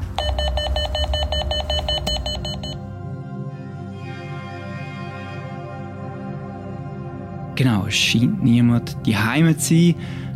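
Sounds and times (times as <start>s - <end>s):
electronic doorbell ringing: 0.2s - 2.8s
speech: 7.6s - 10.3s.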